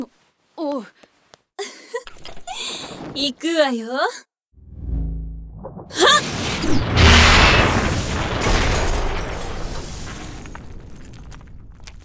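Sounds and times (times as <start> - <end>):
speech: 0.0 - 1.1, 3.2 - 4.3
low rumbling buildup: 4.6 - 8.4
explosion breaking down a door: 4.6 - 12.0
crashing scattering debris: 5.7 - 12.0.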